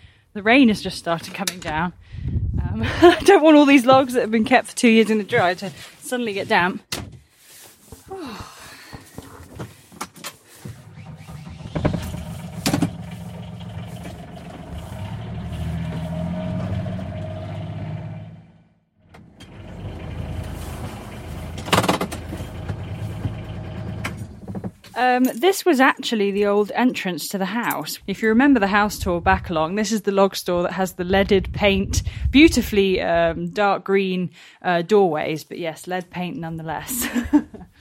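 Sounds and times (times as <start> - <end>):
speech: 0.4 - 7.0, 25.0 - 37.7
laughter: 2.8 - 3.4, 36.9 - 37.6
gator utility vehicle engine driving: 10.4 - 24.8.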